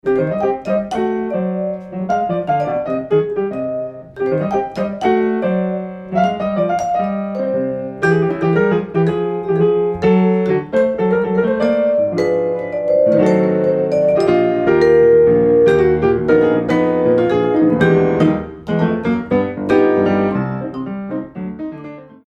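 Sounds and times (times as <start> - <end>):
rumba music: 0.0 - 21.8.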